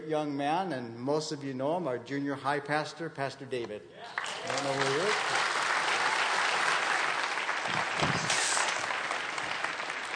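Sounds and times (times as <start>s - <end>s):
speech: 0.1s - 5.4s
audience clapping: 4.1s - 10.1s.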